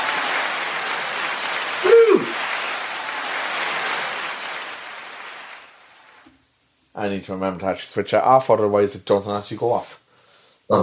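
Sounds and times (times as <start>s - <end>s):
applause sound effect: 0.0s - 6.3s
speech: 7.0s - 10.0s.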